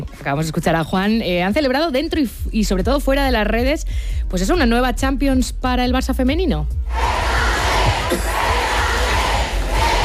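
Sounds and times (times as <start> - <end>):
speech: 0.0 - 7.2
stadium crowd chanting for Alexia Putellas at Barça women's Champions League celebration: 6.9 - 10.0.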